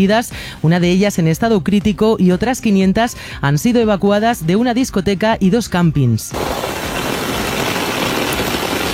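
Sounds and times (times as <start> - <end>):
speech: 0.0 - 6.6
torrential rain downpour: 6.4 - 8.9.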